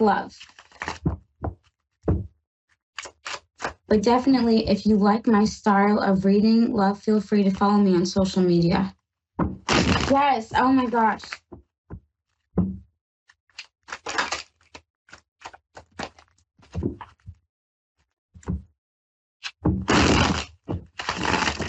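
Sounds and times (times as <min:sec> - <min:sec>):
speech: 0:00.0 - 0:00.6, 0:03.9 - 0:11.5
tarot cards being shuffled: 0:00.4 - 0:02.2, 0:03.0 - 0:03.8, 0:13.5 - 0:17.2, 0:19.4 - 0:21.6.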